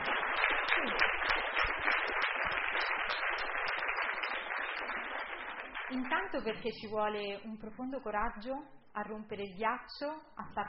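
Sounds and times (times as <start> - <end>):
applause: 0.0 - 7.0
speech: 5.9 - 10.6.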